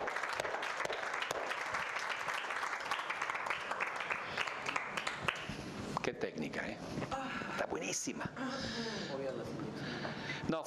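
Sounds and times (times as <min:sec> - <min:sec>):
audience applause: 0:00.0 - 0:05.6
speech: 0:06.4 - 0:10.6.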